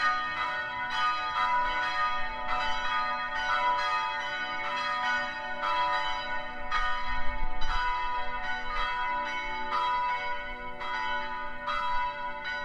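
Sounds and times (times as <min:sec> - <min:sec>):
Angelus church bells pealing: 0:00.0 - 0:12.6.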